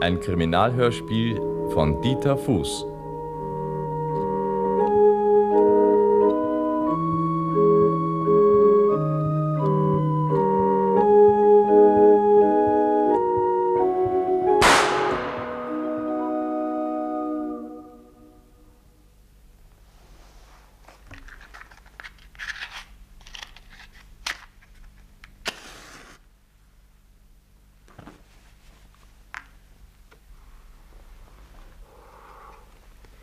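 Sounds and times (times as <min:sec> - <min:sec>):
speech: 0:00.0 - 0:02.9
barrel organ melody: 0:00.0 - 0:19.0
gunshot: 0:14.6 - 0:16.0.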